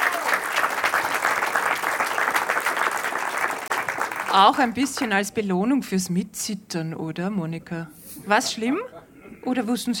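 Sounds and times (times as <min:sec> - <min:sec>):
audience clapping: 0:00.0 - 0:05.3
speech: 0:04.4 - 0:09.9.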